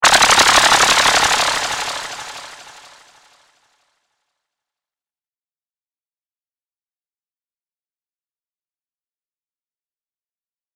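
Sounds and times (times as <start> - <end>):
sci fi insectoid laser mandibles: 0.0 - 3.0.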